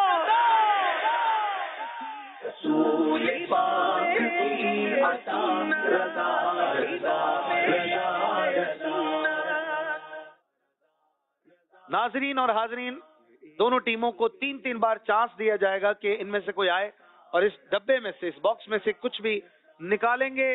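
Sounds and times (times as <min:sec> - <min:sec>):
studio audience chanting a slogan on a televised contest: 0:00.0 - 0:10.3
speech: 0:12.0 - 0:20.5.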